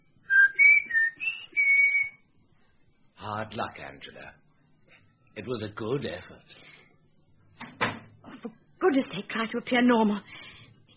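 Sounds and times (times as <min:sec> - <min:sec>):
person whistling a signal: 0:00.3 - 0:02.2
speech: 0:03.3 - 0:04.4, 0:05.4 - 0:06.7, 0:08.4 - 0:10.4.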